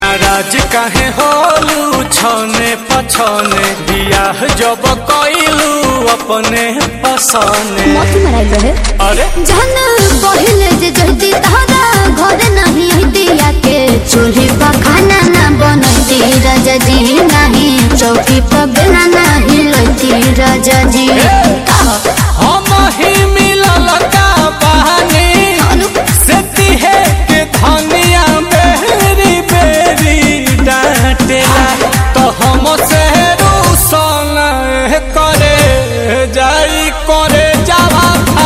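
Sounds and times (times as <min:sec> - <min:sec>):
dj remix song: 0:00.0 - 0:38.4.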